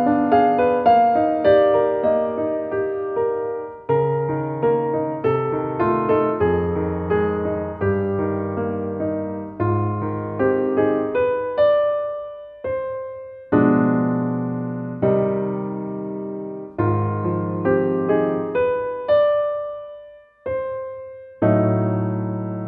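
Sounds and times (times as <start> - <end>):
piano arietta: 0.0 - 22.6.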